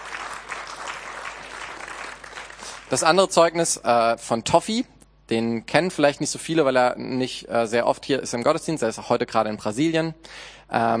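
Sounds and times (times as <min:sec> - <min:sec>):
church service congregation applauding: 0:00.0 - 0:03.2
speech: 0:02.9 - 0:10.9.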